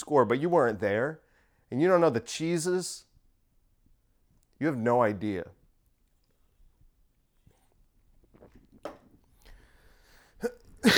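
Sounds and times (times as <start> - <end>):
speech: 0.0 - 3.1, 4.6 - 5.6
person sipping water: 7.4 - 10.9
gulp: 8.2 - 10.9.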